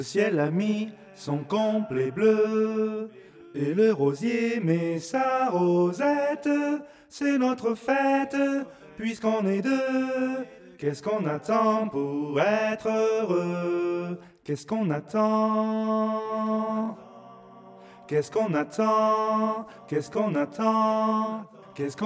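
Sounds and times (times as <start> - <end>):
tenor singing a chorale: 0.0 - 22.0.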